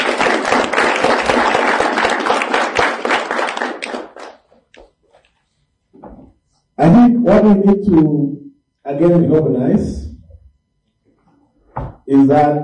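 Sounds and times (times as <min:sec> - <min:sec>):
crowd applauding: 0:00.0 - 0:04.6
speech: 0:06.9 - 0:10.0, 0:12.1 - 0:12.6.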